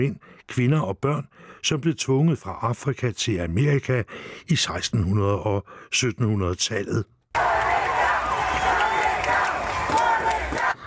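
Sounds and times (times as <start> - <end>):
speech: 0.0 - 7.5
demonstrators shouting to tear statue down: 7.4 - 10.8.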